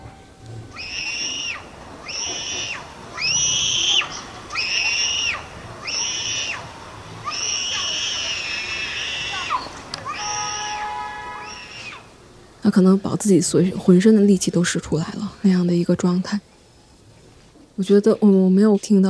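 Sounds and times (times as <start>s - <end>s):
small child screaming in fear: 0.7s - 12.1s
speech: 12.7s - 16.5s, 17.8s - 19.0s.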